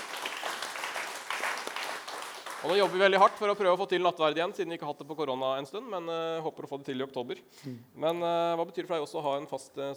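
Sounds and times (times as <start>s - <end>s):
audience applause: 0.0s - 3.3s
speech: 2.6s - 9.9s.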